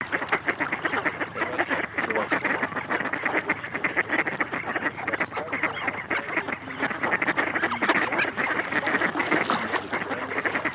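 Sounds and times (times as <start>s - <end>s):
mallard: 0.0s - 10.7s.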